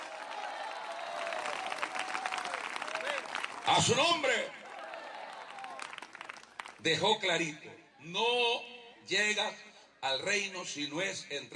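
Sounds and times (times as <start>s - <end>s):
audience applause: 0.0s - 6.8s
speech: 3.7s - 4.6s, 6.8s - 11.5s.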